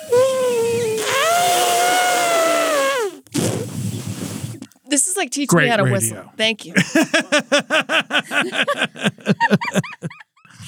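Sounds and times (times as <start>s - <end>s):
person imitating an elephant trumpet: 0.0s - 3.3s
breathy noise: 0.0s - 3.6s
speech: 5.2s - 10.2s
laughter: 6.7s - 10.5s.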